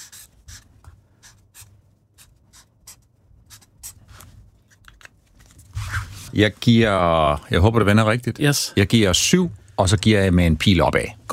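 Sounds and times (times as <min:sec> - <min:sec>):
pen scratching on a notepad writing a grade: 0:00.0 - 0:04.2
speech: 0:06.3 - 0:11.2.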